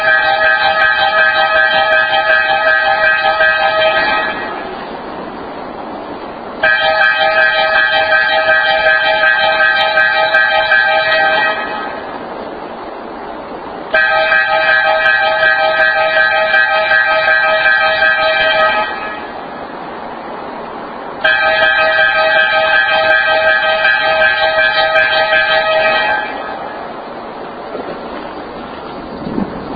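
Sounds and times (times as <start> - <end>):
emergency alert horn pattern: 0.0 - 4.9, 6.6 - 12.2, 13.9 - 19.5, 21.2 - 26.8.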